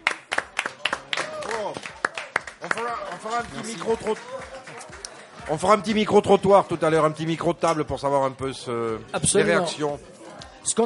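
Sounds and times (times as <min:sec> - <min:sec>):
audience applause: 0:00.0 - 0:06.0
speech: 0:02.9 - 0:04.8, 0:05.5 - 0:10.8.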